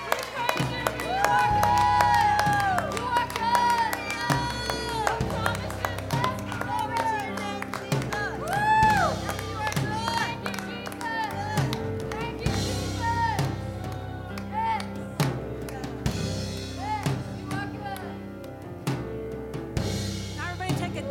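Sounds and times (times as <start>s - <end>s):
audience clapping in praise: 0.0s - 16.3s
sustained music: 0.0s - 21.0s.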